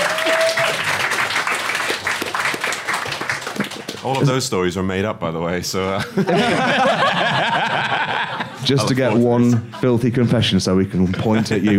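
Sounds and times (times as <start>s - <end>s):
audience applause: 0.0s - 4.4s
speech: 4.0s - 11.7s
laughter: 5.9s - 11.7s.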